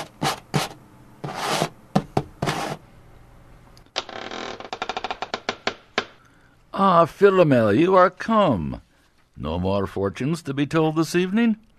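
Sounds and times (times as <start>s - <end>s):
scratching at a door: 0.0s - 2.8s
speech: 6.8s - 11.7s.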